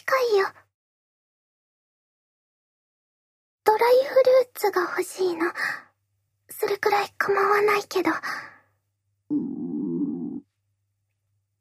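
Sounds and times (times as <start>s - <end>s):
speech: 0.2s - 0.6s, 3.8s - 5.9s, 6.5s - 8.5s
stomach growling from hunger: 9.3s - 10.5s.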